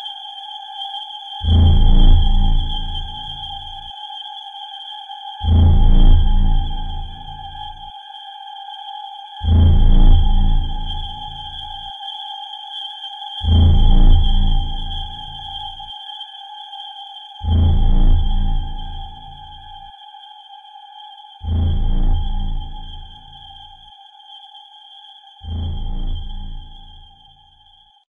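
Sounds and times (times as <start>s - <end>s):
tension music: 1.4s - 3.9s, 5.4s - 7.9s, 9.4s - 11.9s, 13.4s - 15.9s, 17.4s - 19.9s, 21.4s - 23.9s, 25.5s - 27.3s.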